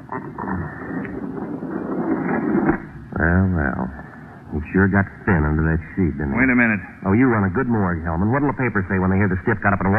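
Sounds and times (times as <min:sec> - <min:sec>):
heavy morgue drawer rolling out: 0:00.8 - 0:02.9
speech: 0:03.2 - 0:09.9.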